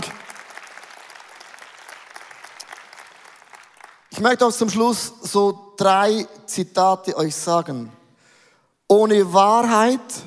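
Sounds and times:
audience applause: 0:00.0 - 0:04.1
speech: 0:04.2 - 0:08.0, 0:08.9 - 0:10.2.

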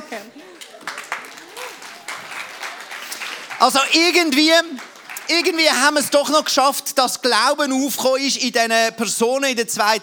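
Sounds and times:
crowd applauding: 0:00.4 - 0:06.7
speech: 0:03.6 - 0:10.0.

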